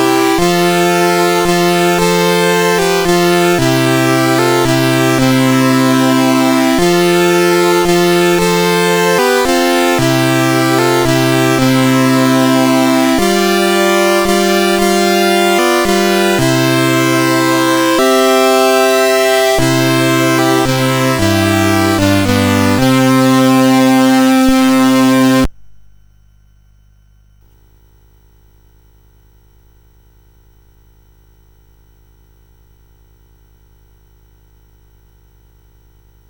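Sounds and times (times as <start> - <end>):
Christmas carol played on a CSG8580 sound chip: 0.0 - 25.5.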